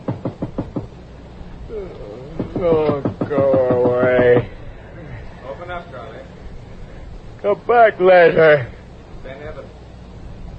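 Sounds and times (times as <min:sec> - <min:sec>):
knocking on a door: 0:00.0 - 0:00.9, 0:02.4 - 0:04.5
speech: 0:01.8 - 0:03.5, 0:07.4 - 0:08.8.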